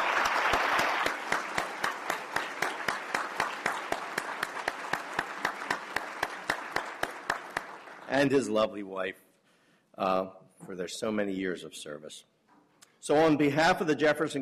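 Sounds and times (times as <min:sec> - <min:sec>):
audience applause: 0:00.0 - 0:08.5
speech: 0:08.2 - 0:09.3, 0:10.0 - 0:12.3, 0:13.0 - 0:14.4.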